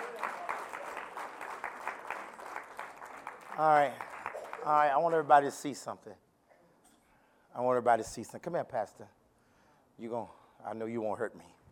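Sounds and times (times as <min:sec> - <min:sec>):
audience hand clapping applause: 0:00.0 - 0:05.2
speech: 0:03.6 - 0:06.2, 0:07.6 - 0:09.2, 0:10.0 - 0:11.6.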